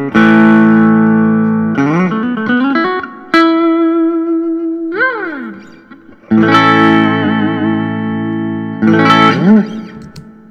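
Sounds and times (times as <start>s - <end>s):
electric guitar with maple top and tremolo: 0.0s - 10.5s.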